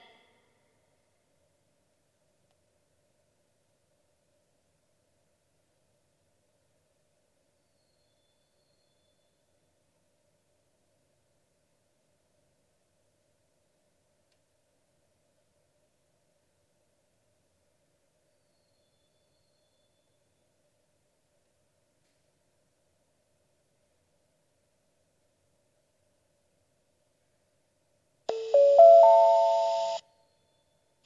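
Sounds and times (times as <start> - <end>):
Iiyama pass train station: 28.3 - 30.0.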